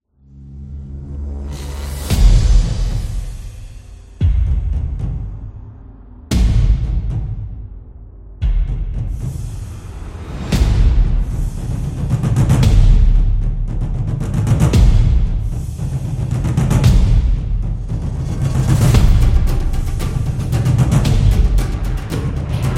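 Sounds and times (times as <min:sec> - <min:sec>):
battle music: 0:01.6 - 0:22.7.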